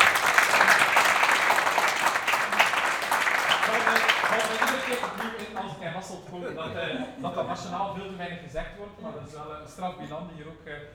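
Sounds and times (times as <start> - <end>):
audience applause: 0.0 - 5.7
speech: 4.9 - 10.9.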